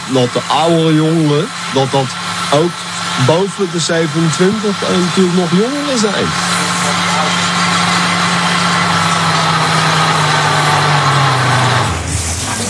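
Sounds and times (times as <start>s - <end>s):
blender pureeing asparagus: 0.0s - 12.6s
speech: 0.1s - 6.6s.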